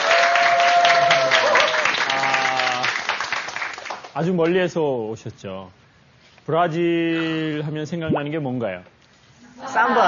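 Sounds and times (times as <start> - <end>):
audience applause: 0.0 - 4.1
speech: 4.2 - 5.8, 6.4 - 8.9, 9.6 - 10.0.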